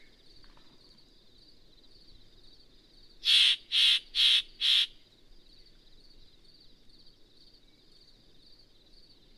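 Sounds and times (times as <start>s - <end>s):
Yellow-breasted Chat calling: 3.2s - 5.0s.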